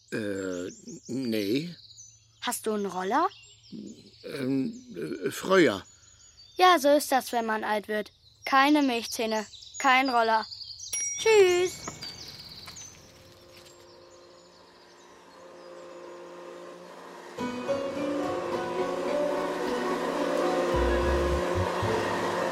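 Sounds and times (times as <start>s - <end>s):
speech: 0.1s - 0.3s, 1.1s - 1.8s, 2.4s - 5.9s, 6.6s - 10.5s, 11.2s - 11.9s
vacuum cleaner running: 13.3s - 22.5s.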